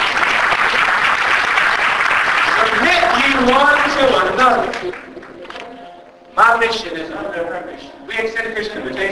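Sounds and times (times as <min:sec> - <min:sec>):
church congregation clapping during a sermon: 0:00.0 - 0:05.6
speech: 0:03.4 - 0:05.0, 0:06.4 - 0:09.1.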